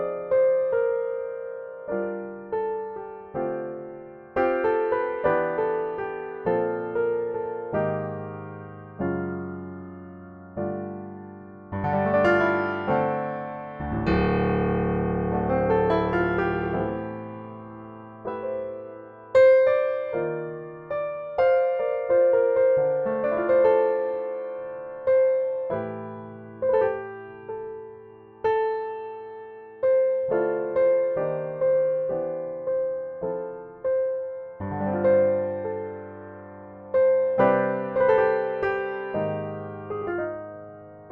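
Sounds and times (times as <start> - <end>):
Yamaha B2 piano: 0.0 - 41.1.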